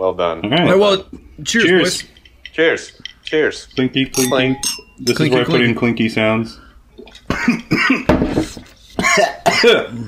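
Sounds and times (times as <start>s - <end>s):
speech: 0.0s - 6.6s, 7.2s - 8.6s, 9.2s - 10.0s
choking cough: 7.3s - 8.1s, 9.0s - 10.0s.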